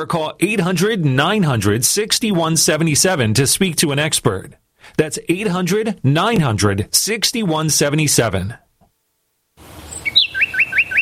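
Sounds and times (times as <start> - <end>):
speech: 0.0 - 8.6
small birds chirping in a garden: 9.7 - 11.0.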